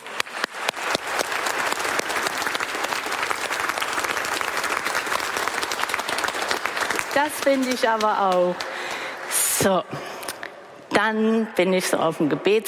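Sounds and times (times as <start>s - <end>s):
audience applause: 0.0s - 9.6s
speech: 7.2s - 8.7s, 9.6s - 10.0s, 11.0s - 12.6s.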